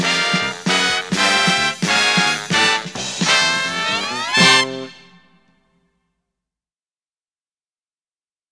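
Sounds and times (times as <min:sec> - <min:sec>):
instrumental music: 0:00.0 - 0:05.7.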